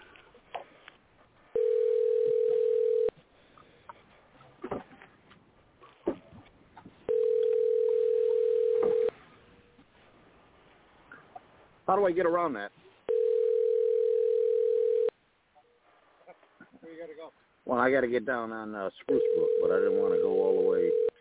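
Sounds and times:
telephone ringback tone: 1.6s - 3.2s, 7.1s - 9.1s, 13.1s - 15.1s, 19.1s - 21.1s
speech: 11.9s - 12.7s, 17.8s - 21.2s.

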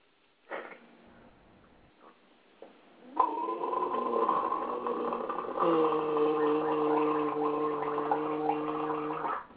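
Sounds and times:
person gargling salt water: 3.0s - 9.5s.

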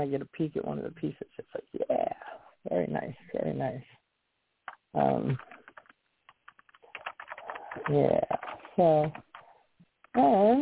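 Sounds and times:
speech: 0.0s - 2.0s, 2.7s - 4.0s, 4.9s - 5.6s, 7.8s - 9.3s, 10.2s - 10.6s
computer keyboard typing: 4.7s - 10.2s.

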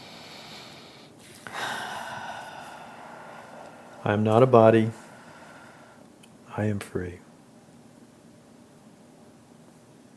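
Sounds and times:
deep breath: 0.0s - 4.1s, 5.0s - 6.1s
soft hiss: 0.0s - 10.1s
speech: 4.0s - 5.0s, 6.6s - 7.2s.

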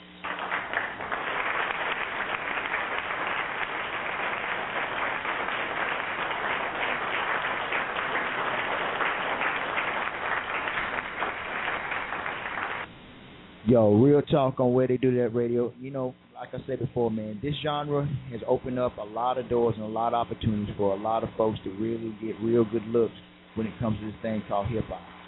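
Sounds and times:
crowd applause: 0.2s - 12.9s
speech: 13.7s - 25.1s.

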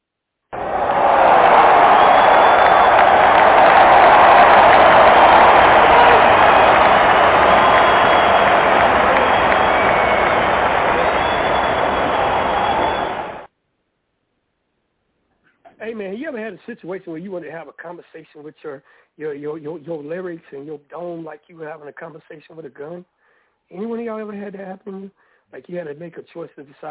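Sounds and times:
audience applause: 0.6s - 13.5s
speech: 16.7s - 26.8s.

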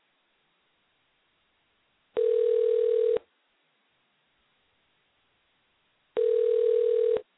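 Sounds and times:
telephone ring tones on a line: 2.2s - 3.2s, 6.2s - 7.2s.

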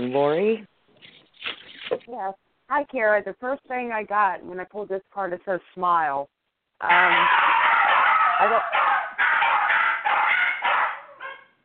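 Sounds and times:
speech: 0.0s - 0.7s, 1.4s - 7.4s, 8.4s - 8.9s
dog barking loudly and harshly: 6.9s - 11.6s.

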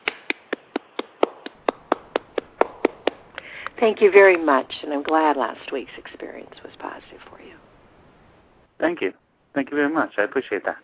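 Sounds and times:
hand clapping: 0.0s - 3.8s
speech: 3.8s - 7.7s, 8.8s - 10.8s.

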